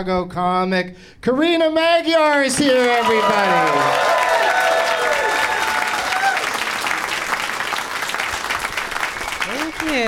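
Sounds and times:
speech: 0.0 - 4.4
audience applause: 2.7 - 10.0.

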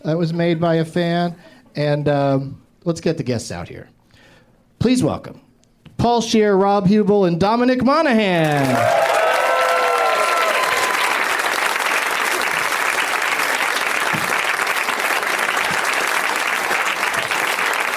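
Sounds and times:
speech: 0.0 - 4.0, 4.8 - 5.4, 6.0 - 9.1
audience applause: 8.4 - 17.9.

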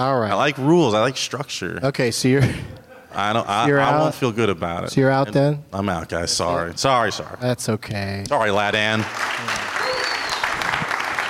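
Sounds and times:
speech: 0.0 - 9.6
audience applause: 8.7 - 11.2.

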